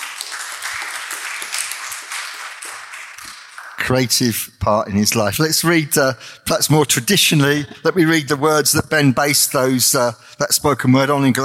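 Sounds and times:
audience applause: 0:00.0 - 0:04.0
speech: 0:03.9 - 0:11.4.

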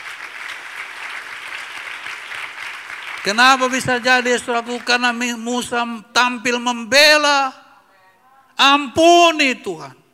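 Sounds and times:
audience applauding: 0:00.0 - 0:05.2
speech: 0:03.2 - 0:07.6, 0:08.6 - 0:10.0.

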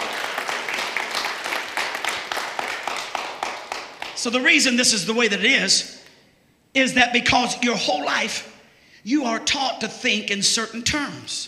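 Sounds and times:
audience clapping in praise: 0:00.0 - 0:04.3
speech: 0:04.2 - 0:06.0, 0:06.8 - 0:11.4.

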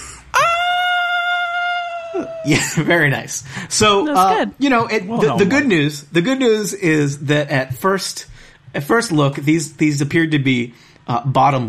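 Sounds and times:
high-pitched girlish scream: 0:00.4 - 0:02.4
speech: 0:02.2 - 0:11.6.

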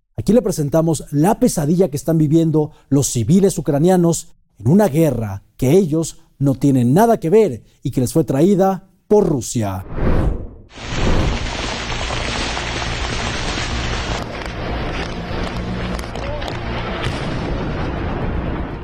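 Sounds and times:
speech: 0:00.2 - 0:10.9
explosions: 0:09.9 - 0:18.8
air defense fire against drones: 0:16.8 - 0:18.8.

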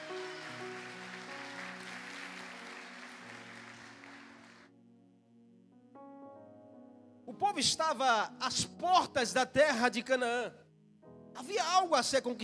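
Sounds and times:
audience applauding: 0:00.0 - 0:04.7
speech: 0:07.3 - 0:10.6, 0:11.4 - 0:12.4.

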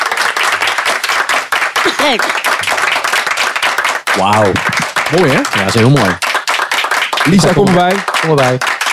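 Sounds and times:
audience applause: 0:00.0 - 0:08.9
speech: 0:02.0 - 0:02.5, 0:04.2 - 0:06.3, 0:07.2 - 0:08.7.

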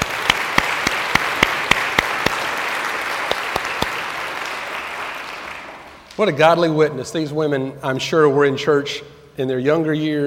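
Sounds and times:
audience applause: 0:00.0 - 0:06.0
speech: 0:06.2 - 0:10.2.

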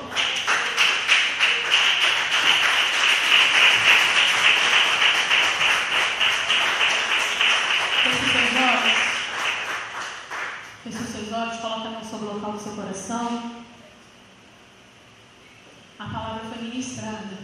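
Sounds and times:
audience clapping: 0:00.0 - 0:11.2.

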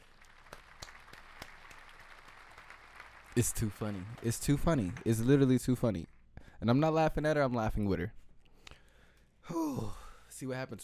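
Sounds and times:
round of applause: 0:00.0 - 0:06.2
speech: 0:03.4 - 0:08.2, 0:10.4 - 0:10.8.

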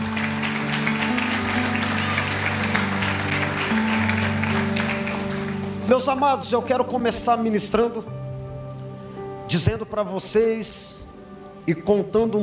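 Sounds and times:
audience applauding: 0:00.0 - 0:06.1
sustained low organ or keyboard chord: 0:00.0 - 0:12.4
speech: 0:05.9 - 0:08.2, 0:09.5 - 0:11.1, 0:11.7 - 0:12.4.

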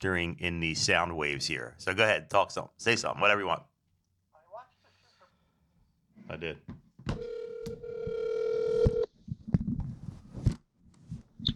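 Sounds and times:
speech: 0:00.0 - 0:03.7, 0:06.3 - 0:07.4
telephone hang-up: 0:07.1 - 0:09.1
dial tone: 0:07.2 - 0:09.1.

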